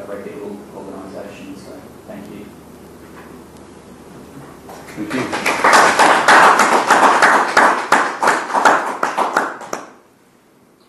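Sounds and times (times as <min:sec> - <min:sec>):
audience clapping at a meeting after a farewell speech: 0:04.7 - 0:10.0
speech: 0:05.0 - 0:05.4.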